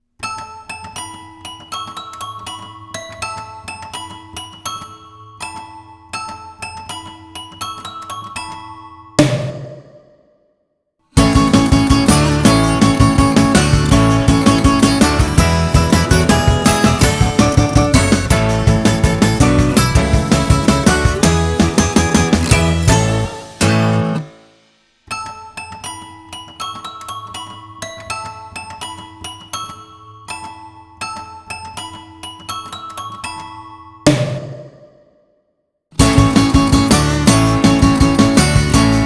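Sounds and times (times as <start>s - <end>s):
instrumental dance music: 11.2s - 24.3s, 36.0s - 39.0s.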